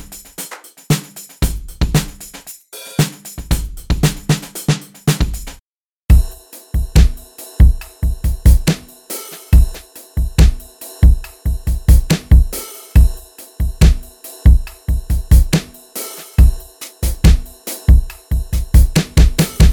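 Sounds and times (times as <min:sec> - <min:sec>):
country drumming: 0:00.9 - 0:02.4, 0:03.0 - 0:08.9, 0:09.5 - 0:15.7, 0:16.4 - 0:19.7.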